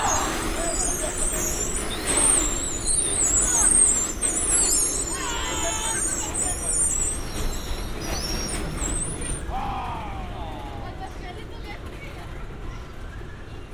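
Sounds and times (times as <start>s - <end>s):
shrill scraping squeals: 0.0s - 9.6s
machinery rumbling at Santa Monica Pier: 0.0s - 13.4s
voices: 0.0s - 13.7s.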